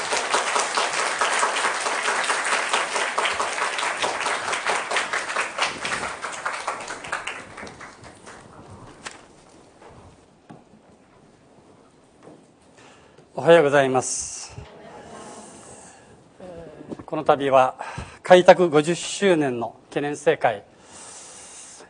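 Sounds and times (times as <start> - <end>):
audience applause welcoming a speaker: 0.0 - 9.2
speech: 13.4 - 14.3, 17.2 - 20.7.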